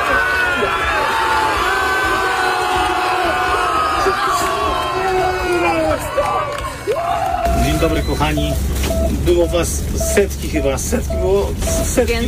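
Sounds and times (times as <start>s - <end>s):
crowd cheering at swimmer's finish line: 0.0s - 8.4s
speech: 7.8s - 12.2s.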